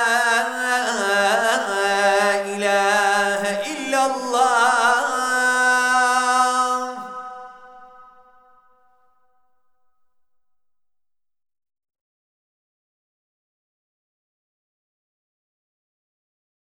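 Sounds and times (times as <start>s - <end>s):
Qur'an recitation in Istanbul Turkey: 0.0s - 9.0s
ezan call to prayer in Istanbul Turkey: 0.0s - 9.0s.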